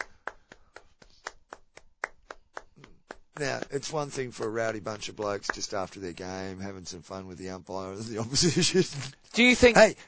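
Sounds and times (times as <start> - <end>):
hockey clap: 0.0 - 6.0
speech: 3.4 - 10.0.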